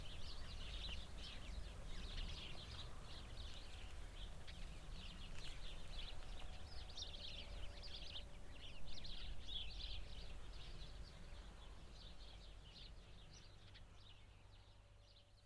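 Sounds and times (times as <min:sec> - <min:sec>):
many sparrows chattering in a bush beside a cow pasture: 0:00.0 - 0:15.4.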